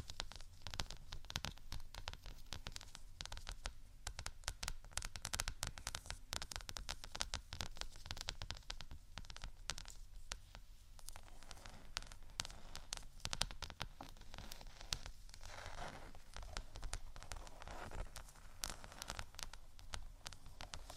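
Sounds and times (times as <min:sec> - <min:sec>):
scratching and tapping: 0:00.0 - 0:20.9.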